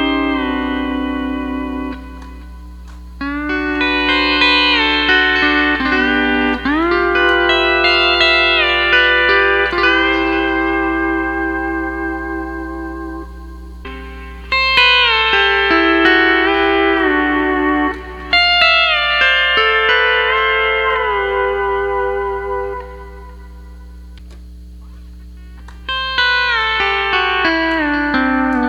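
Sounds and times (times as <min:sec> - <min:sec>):
first string plucked: 0:00.0 - 0:28.6.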